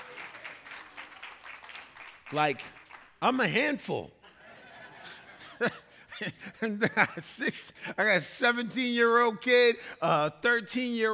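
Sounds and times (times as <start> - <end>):
audience applause: 0.0 - 3.2
speech: 2.3 - 4.2, 5.6 - 11.1
laughter: 4.2 - 7.2.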